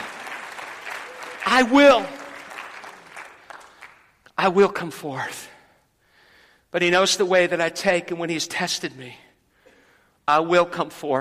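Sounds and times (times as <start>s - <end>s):
audience clapping: 0.0s - 4.3s
speech: 1.5s - 2.2s, 4.4s - 5.6s, 6.7s - 9.2s, 10.3s - 11.2s.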